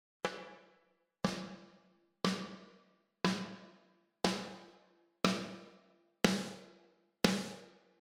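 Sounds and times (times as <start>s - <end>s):
snare drum: 0.2s - 8.0s.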